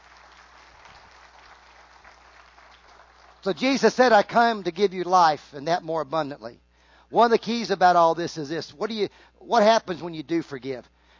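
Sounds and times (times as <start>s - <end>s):
audience applause: 0.0s - 3.7s
speech: 3.4s - 11.0s.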